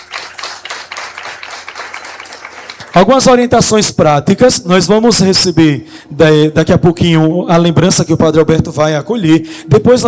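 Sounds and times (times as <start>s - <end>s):
church congregation clapping for a priest: 0.0s - 3.9s
speech: 3.0s - 10.0s.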